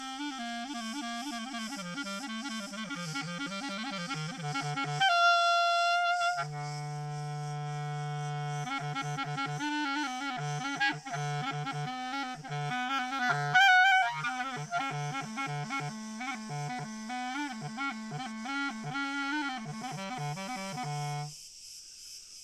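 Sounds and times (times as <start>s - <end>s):
crickets chorus: 0.0s - 22.4s.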